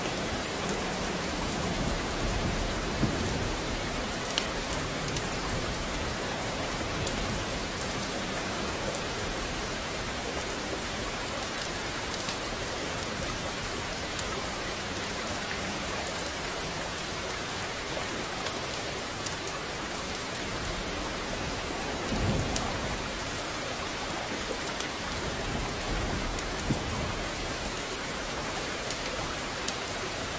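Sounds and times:
steady rain: 0.0s - 30.3s.

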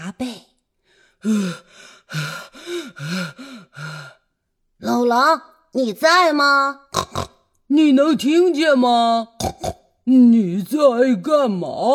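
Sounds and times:
speech: 0.1s - 0.5s, 1.2s - 4.2s, 4.8s - 11.9s
person imitating heavy exhausted panting: 1.0s - 4.2s.

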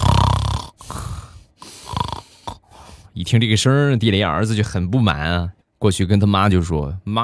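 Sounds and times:
loud snoring: 0.0s - 3.1s
speech: 3.2s - 7.2s.

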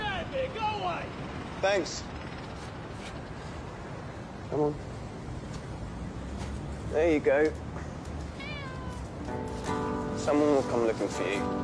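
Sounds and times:
noise: 0.0s - 11.6s
speech: 1.6s - 2.2s, 4.5s - 4.9s, 6.9s - 7.6s, 9.3s - 11.6s
stray cat meowing: 8.2s - 9.3s.

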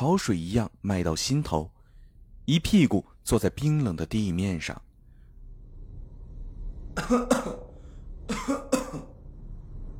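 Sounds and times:
speech: 0.0s - 1.8s, 2.5s - 4.8s, 7.0s - 7.7s, 8.3s - 9.1s
faint low hum: 0.7s - 9.9s
harsh coughs: 7.0s - 9.2s.

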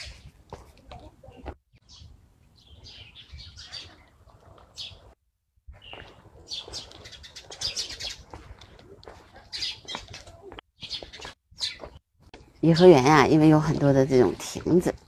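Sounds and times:
flock of sparrows chirping: 1.2s - 4.1s, 4.8s - 5.1s, 5.8s - 8.4s, 9.2s - 12.0s
speech: 12.6s - 14.9s.

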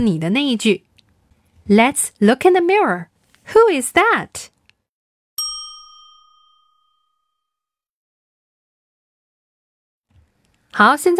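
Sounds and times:
speech: 0.0s - 0.9s, 1.6s - 4.6s, 10.8s - 11.1s
bright ding chime: 5.4s - 7.6s.

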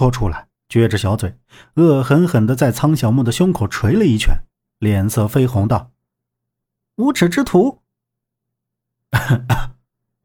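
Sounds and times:
speech: 0.0s - 5.9s, 7.0s - 7.8s, 9.1s - 9.7s
dry cough: 9.1s - 9.9s.

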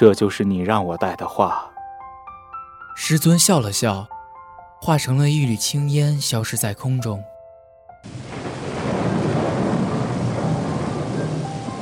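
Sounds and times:
speech: 0.0s - 1.7s, 3.0s - 4.2s, 4.8s - 7.3s, 8.0s - 9.1s
rain falling: 8.1s - 11.7s
thunder rumbling: 8.1s - 11.7s.

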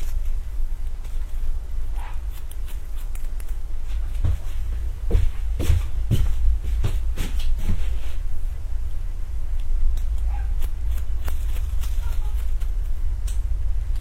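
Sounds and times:
constant low hum: 0.0s - 14.0s
scissor snips during a haircut: 2.0s - 3.6s, 9.5s - 14.0s.

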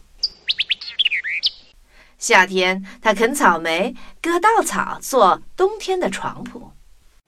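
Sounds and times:
bird chirping: 0.2s - 1.8s
speech: 2.2s - 6.8s.

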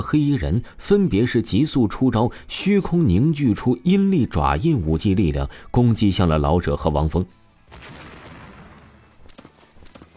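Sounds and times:
speech: 0.0s - 8.0s
energy explosion sound effect: 7.6s - 9.3s.

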